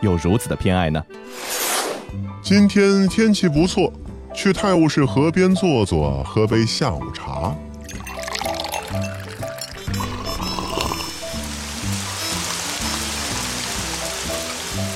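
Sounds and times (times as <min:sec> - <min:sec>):
speech: 0:00.0 - 0:07.7
looping melodic music track with repeating low notes: 0:07.8 - 0:11.8
steady rain falling: 0:11.2 - 0:14.9.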